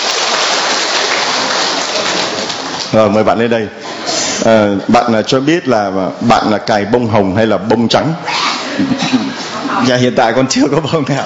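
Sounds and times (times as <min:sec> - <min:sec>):
audience applause: 0:00.0 - 0:03.0
speech: 0:02.9 - 0:11.2.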